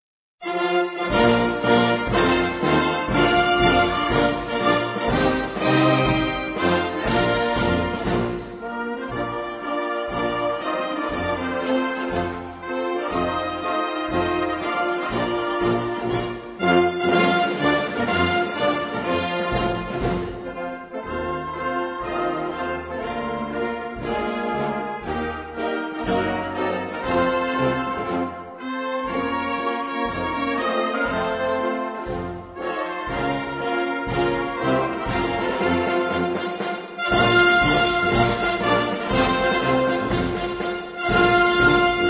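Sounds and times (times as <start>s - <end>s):
instrumental national anthem: 0.4s - 42.0s.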